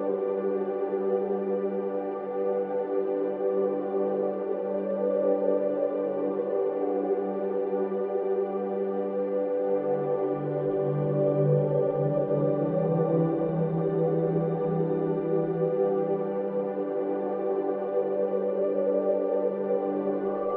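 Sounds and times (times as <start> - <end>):
light warm atmospheric ambient soundscape blend: 0.0 - 20.5.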